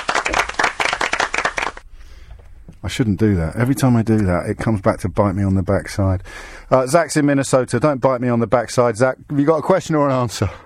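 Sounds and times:
round of applause: 0.0s - 1.8s
speech: 2.9s - 10.6s.

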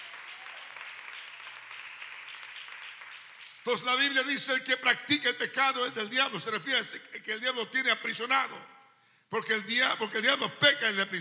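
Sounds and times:
audience applause: 0.0s - 3.8s
speech: 3.6s - 11.1s.

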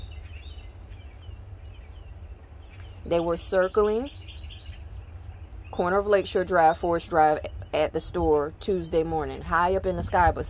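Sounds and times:
bird calling, possibly eagle: 0.0s - 8.0s
speech: 3.0s - 4.2s, 5.8s - 10.4s.

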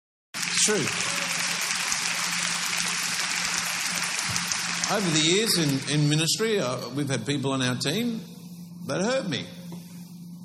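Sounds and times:
half-hearted applause: 0.4s - 6.2s
speech: 0.6s - 1.1s, 4.9s - 9.6s.

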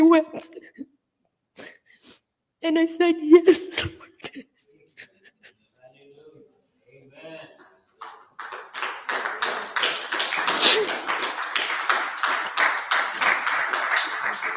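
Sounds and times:
speech: 0.1s - 0.9s, 2.6s - 4.5s
crowd clapping: 8.0s - 14.5s.

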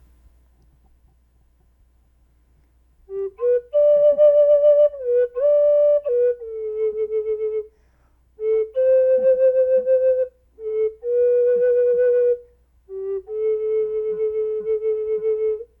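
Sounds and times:
wooden flute playing a slow wandering melody: 3.1s - 15.7s.

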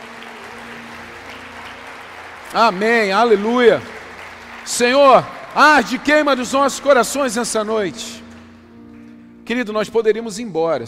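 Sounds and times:
audience applause: 0.0s - 8.4s
speech: 2.5s - 3.9s, 4.7s - 8.2s, 9.5s - 10.8s.

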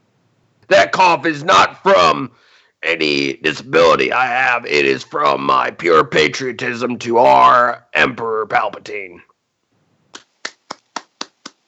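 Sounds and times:
speech: 1.0s - 9.3s
hands clapping: 10.1s - 11.6s.

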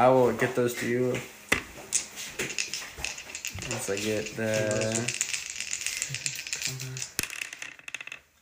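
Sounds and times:
speech: 0.0s - 1.4s, 3.7s - 5.2s, 6.1s - 7.2s
dice rattling during a tabletop Dungeons & Dragons game: 1.6s - 8.3s.

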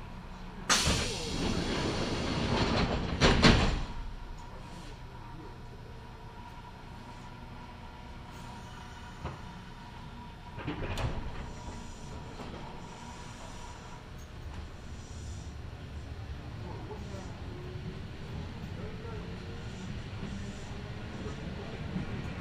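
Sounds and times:
Kintetsu Nagoya Line local train running from Shiroko toward Tsu-Shimmachi: 0.0s - 22.4s
faint voices: 15.8s - 22.1s.

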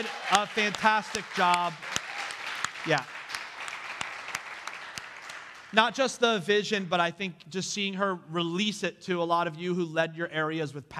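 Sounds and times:
speech: 0.0s - 1.9s, 2.8s - 3.2s, 5.7s - 10.9s
round of applause: 0.0s - 6.3s.

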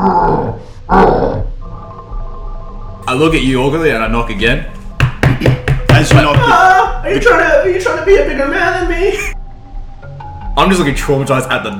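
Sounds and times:
grunting and groaning behind a door: 0.0s - 1.6s
speech: 3.1s - 4.8s, 5.4s - 9.4s, 10.6s - 11.7s.

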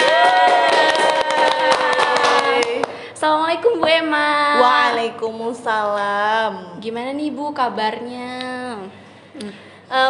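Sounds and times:
group applauding: 0.0s - 3.1s
speech: 3.2s - 10.0s.

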